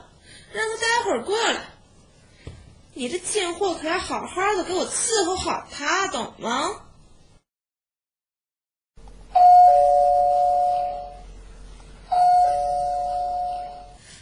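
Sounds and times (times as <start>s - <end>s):
speech: 0.5s - 1.7s, 3.0s - 6.8s
electronic doorbell ringing: 9.3s - 11.3s, 12.1s - 14.0s.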